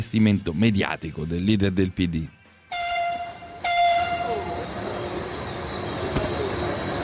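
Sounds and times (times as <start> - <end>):
speech: 0.0 - 2.4
train horn blasts as it pulls out of Tiburtina station: 2.7 - 4.7
train rolling rumble with faint wheel squeal: 3.1 - 7.0.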